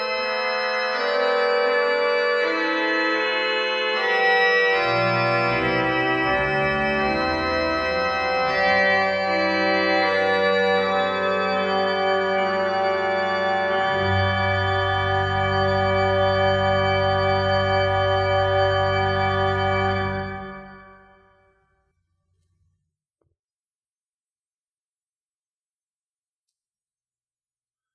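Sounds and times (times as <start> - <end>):
organ: 0.0 - 21.6.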